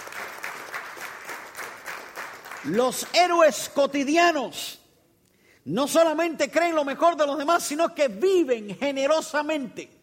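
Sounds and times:
audience applause: 0.0s - 2.8s
speech: 2.6s - 4.8s, 5.6s - 10.0s.

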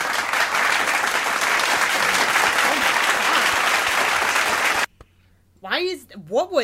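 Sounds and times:
round of applause sound effect: 0.0s - 4.9s
speech: 5.8s - 6.6s.

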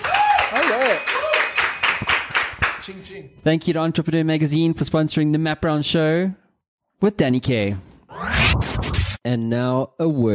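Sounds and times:
applause: 0.0s - 2.9s
speech: 2.9s - 6.4s, 7.0s - 7.9s, 8.5s - 10.3s.

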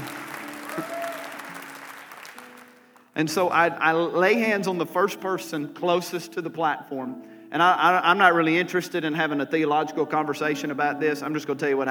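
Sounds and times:
audience clapping: 0.0s - 3.6s
speech: 3.2s - 11.8s.

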